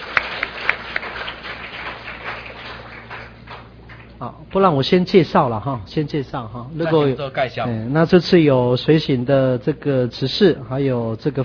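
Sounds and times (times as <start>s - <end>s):
audience applause: 0.0s - 4.2s
speech: 4.2s - 11.4s.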